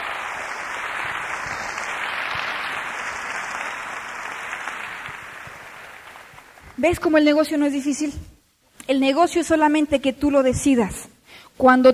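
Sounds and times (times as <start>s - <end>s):
crowd applauding: 0.0s - 7.0s
speech: 6.8s - 8.3s, 8.9s - 11.9s.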